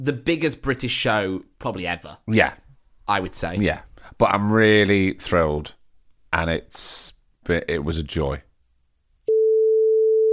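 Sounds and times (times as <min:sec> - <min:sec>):
speech: 0:00.0 - 0:08.5
censor bleep: 0:09.3 - 0:10.3.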